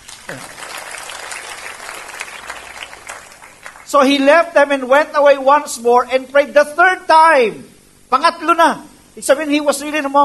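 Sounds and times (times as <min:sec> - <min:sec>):
church congregation applauding the intercessors: 0:00.0 - 0:04.0
speech: 0:00.3 - 0:00.6, 0:03.9 - 0:10.2.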